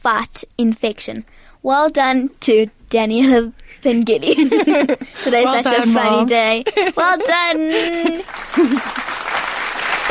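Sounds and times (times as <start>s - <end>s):
speech: 0.0s - 9.2s
laughter: 4.2s - 10.1s
applause: 7.7s - 10.1s.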